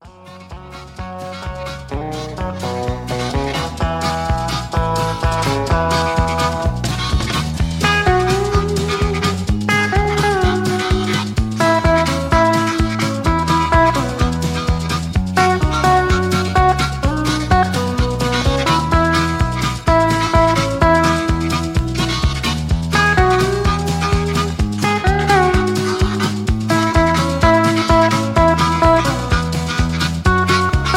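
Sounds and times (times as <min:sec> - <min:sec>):
instrumental music: 0:00.0 - 0:30.9.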